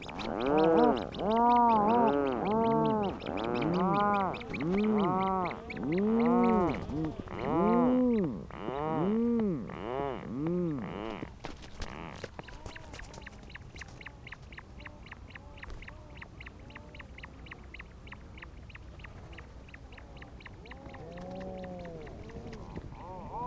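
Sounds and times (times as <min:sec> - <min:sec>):
rhinoceros auklet groaning calls: 0:00.3 - 0:11.3, 0:20.6 - 0:23.4.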